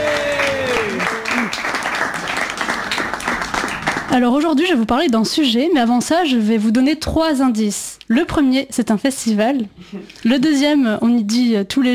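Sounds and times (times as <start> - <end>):
audience applause and cheers in a live show: 0.0 - 4.2
speech: 4.1 - 11.9.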